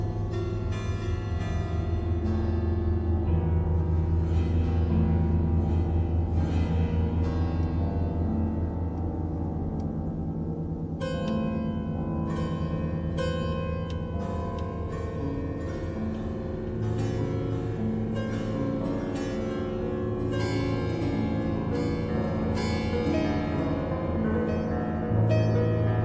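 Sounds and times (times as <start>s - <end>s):
piano thread noise: 0.0s - 26.0s.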